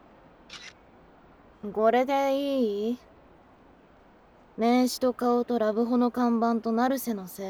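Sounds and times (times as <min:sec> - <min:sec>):
faint steady hiss: 0:00.0 - 0:07.4
camera shutter taking a photo: 0:00.5 - 0:00.8
speech: 0:01.6 - 0:03.1, 0:04.6 - 0:07.4.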